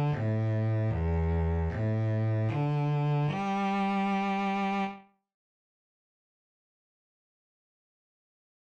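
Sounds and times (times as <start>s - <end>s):
bass playing half notes on open strings: 0.0s - 5.0s.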